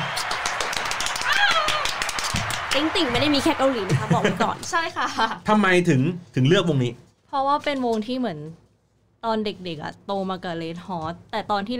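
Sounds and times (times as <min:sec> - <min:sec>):
hand clapping: 0:00.0 - 0:04.5
speech: 0:02.8 - 0:08.6, 0:09.2 - 0:11.7
laughter: 0:03.0 - 0:05.3.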